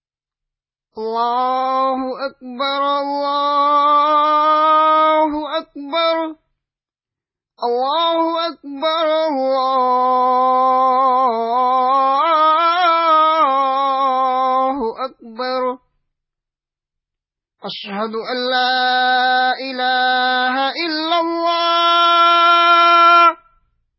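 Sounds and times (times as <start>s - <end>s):
Azan call to prayer: 1.0s - 6.4s, 7.6s - 15.8s, 17.6s - 23.6s.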